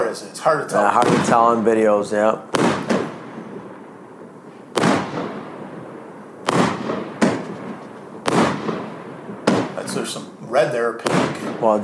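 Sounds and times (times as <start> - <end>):
fireworks crackling and popping: 0.0 - 11.8
speech: 0.2 - 2.6, 10.1 - 11.8.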